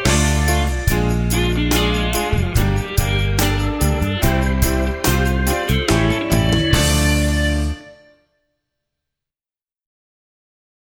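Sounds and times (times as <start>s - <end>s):
strings playing a D natural minor scale: 0.0s - 8.1s.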